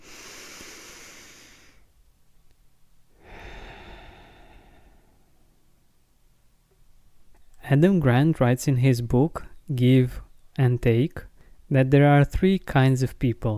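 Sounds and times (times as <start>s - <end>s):
deep breath in and out: 0.0s - 1.9s, 3.1s - 5.7s
speech: 7.7s - 13.5s.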